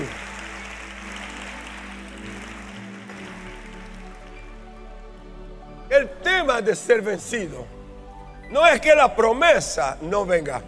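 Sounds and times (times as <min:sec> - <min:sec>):
audience applause: 0:00.0 - 0:04.8
speech: 0:05.9 - 0:07.8, 0:08.5 - 0:10.6.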